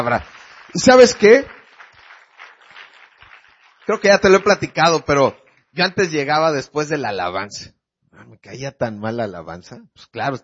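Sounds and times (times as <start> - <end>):
speech: 0.0 - 1.6, 3.9 - 10.4
audience applauding: 0.0 - 6.3.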